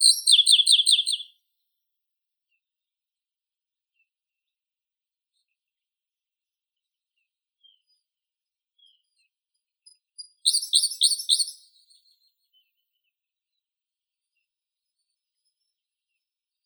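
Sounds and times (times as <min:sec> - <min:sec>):
Siberian blue robin Luscinia cyane singing: 0:00.0 - 0:01.3, 0:10.3 - 0:12.0.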